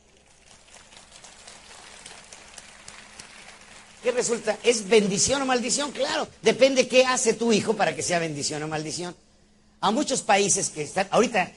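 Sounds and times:
audience applause: 0.0 - 5.5
speech: 4.0 - 9.2, 9.8 - 11.5.

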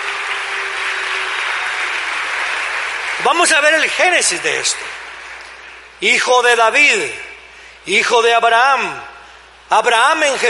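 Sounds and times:
audience applauding loudly: 0.0 - 6.1
speech: 3.2 - 5.0, 6.0 - 9.1, 9.7 - 10.4.

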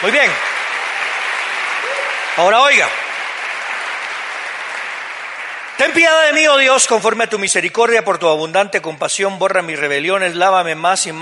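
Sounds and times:
speech: 0.0 - 0.6, 2.4 - 3.0, 5.8 - 11.2
audience applauding loudly: 0.0 - 7.4.

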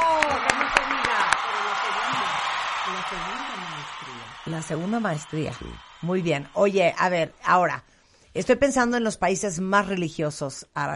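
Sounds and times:
audience applause: 0.0 - 7.2
speech: 4.5 - 10.9.

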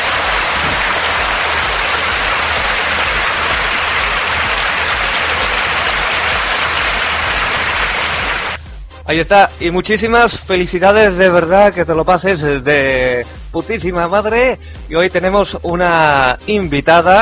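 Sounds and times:
audience applause: 0.0 - 8.6
speech: 9.1 - 17.2.

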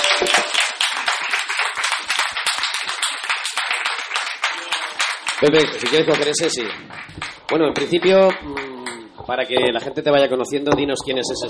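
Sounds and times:
room full of people applauding: 0.0 - 9.2
speech: 5.4 - 8.7, 9.3 - 11.4.

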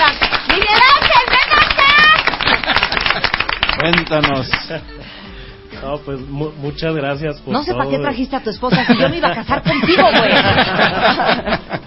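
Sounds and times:
applause: 0.0 - 4.8
laughter: 1.8 - 3.6, 8.7 - 11.8
speech: 3.9 - 5.0, 5.8 - 11.8.

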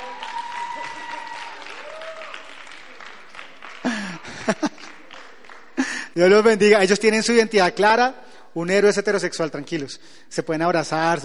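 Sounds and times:
audience applause: 0.0 - 6.0
laughter: 3.7 - 6.0
speech: 4.5 - 4.7, 6.2 - 11.2.

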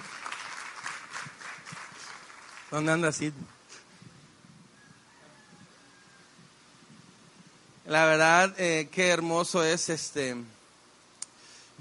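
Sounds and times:
audience applause: 0.0 - 3.2
speech: 2.7 - 3.6, 7.9 - 10.6.

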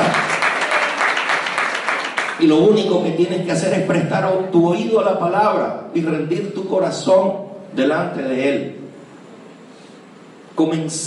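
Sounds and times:
audience applause: 0.0 - 2.5
speech: 2.4 - 8.8, 10.6 - 11.0.

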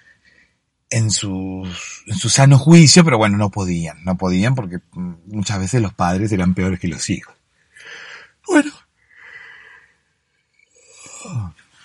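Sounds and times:
speech: 0.9 - 8.8
person yawning: 10.9 - 11.5.

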